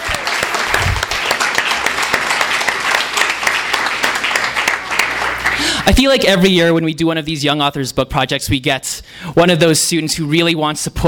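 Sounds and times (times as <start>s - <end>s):
audience clapping: 0.0s - 6.3s
speech: 5.9s - 11.0s.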